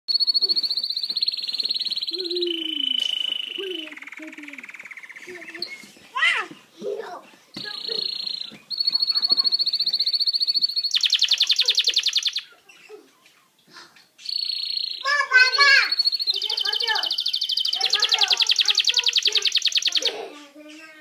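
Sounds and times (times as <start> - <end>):
canary singing: 0.1 - 6.7, 7.4 - 21.0.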